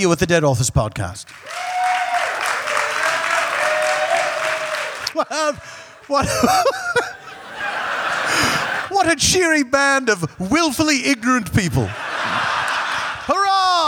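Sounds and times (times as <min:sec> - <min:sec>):
speech: 0:00.0 - 0:01.9, 0:05.2 - 0:07.2, 0:09.0 - 0:12.0
audience applause given as a vote: 0:01.2 - 0:08.9
crowd noise: 0:01.2 - 0:09.0
audience laughter: 0:01.4 - 0:08.9, 0:11.7 - 0:13.8.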